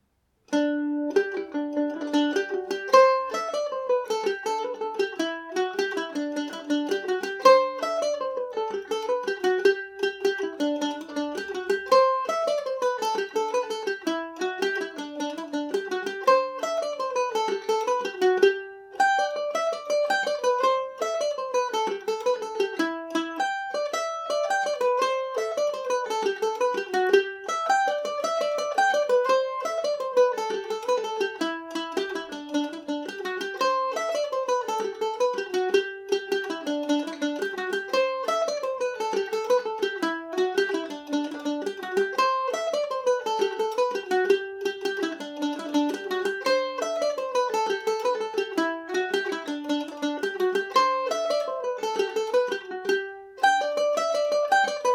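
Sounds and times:
Irish mandolin in G major: 0:00.0 - 0:54.9.

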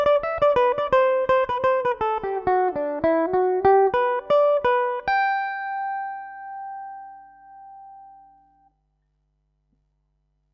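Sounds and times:
Irish mandolin playing: 0:00.0 - 0:08.4.

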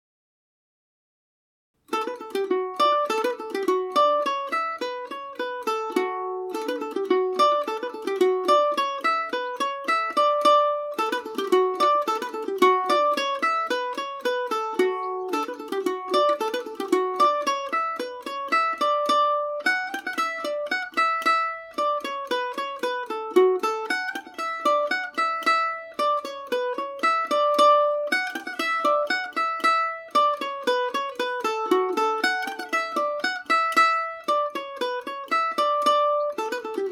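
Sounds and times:
polka in D major on mandolin: 0:01.8 - 0:36.9.

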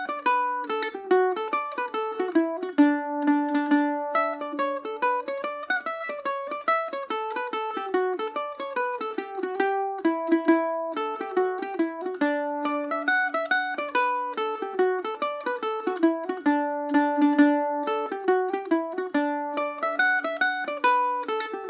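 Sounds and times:
Irish mandolin playing a hornpipe in D major on a Macaferri mandolin: 0:00.0 - 0:21.6.

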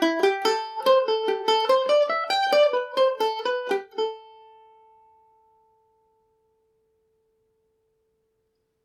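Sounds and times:
Irish mandolin in A minor: 0:00.0 - 0:06.5.

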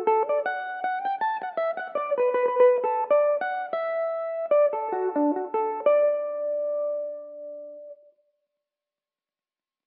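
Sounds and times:
Irish mandolin playing a reel in D major: 0:00.0 - 0:07.8.

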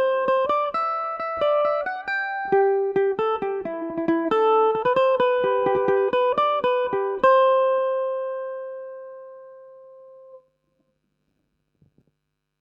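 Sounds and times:
Irish mandolin playing a jig in A dorian: 0:00.0 - 0:10.0.

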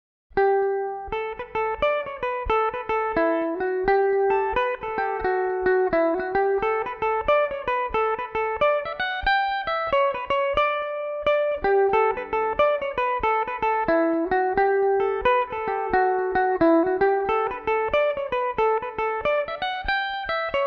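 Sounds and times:
Irish mandolin playing in D major: 0:00.4 - 0:20.6.

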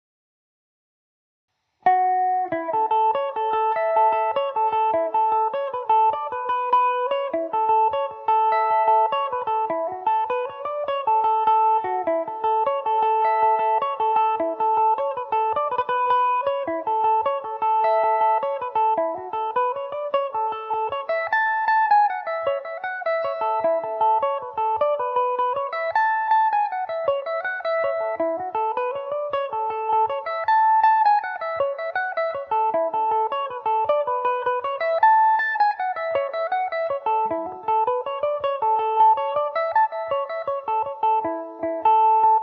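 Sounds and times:
Irish mandolin in A major: 0:01.9 - 0:42.4.

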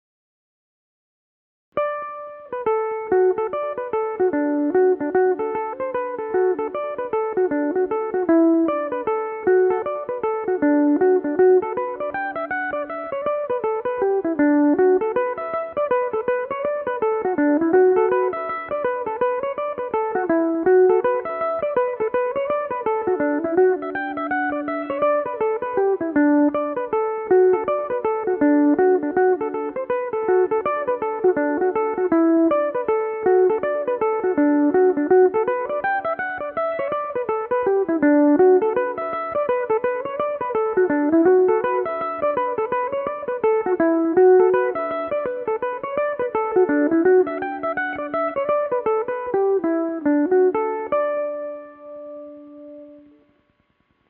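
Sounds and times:
Irish mandolin playing in D major: 0:01.8 - 0:53.2.

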